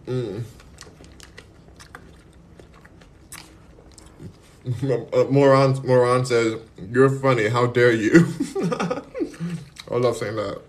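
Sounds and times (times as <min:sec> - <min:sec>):
biting and chewing melon: 0:00.0 - 0:04.7
speech: 0:00.1 - 0:00.6, 0:04.7 - 0:08.9, 0:10.0 - 0:10.6
laughter: 0:08.2 - 0:09.6.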